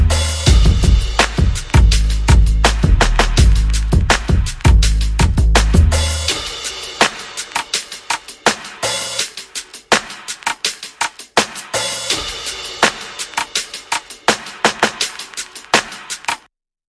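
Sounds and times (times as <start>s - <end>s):
bass: 0.0s - 6.5s
percussion: 0.0s - 16.5s.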